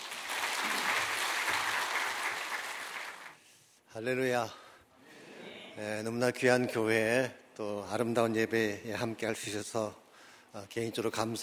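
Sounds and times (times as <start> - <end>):
audience applause: 0.0 - 3.4
speech: 4.0 - 4.6, 5.8 - 11.4.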